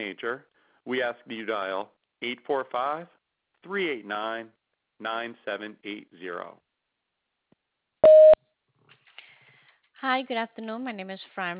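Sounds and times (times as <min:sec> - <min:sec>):
speech: 0:00.0 - 0:06.7, 0:10.0 - 0:11.5
voicemail beep: 0:08.0 - 0:08.4.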